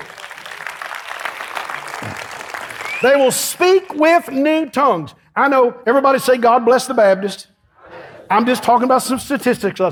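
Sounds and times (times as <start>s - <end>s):
audience clapping: 0.0s - 4.4s
speech: 3.0s - 7.5s, 8.3s - 9.9s.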